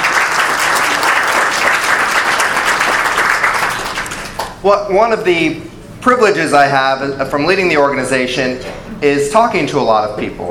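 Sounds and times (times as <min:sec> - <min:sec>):
audience applause: 0:00.0 - 0:04.5
speech: 0:04.6 - 0:10.4.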